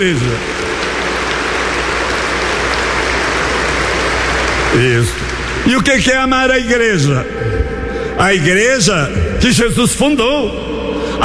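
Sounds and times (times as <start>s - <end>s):
speech: 0.0s - 0.8s, 4.7s - 7.5s, 8.2s - 11.2s
audience applause for priests: 0.0s - 6.1s.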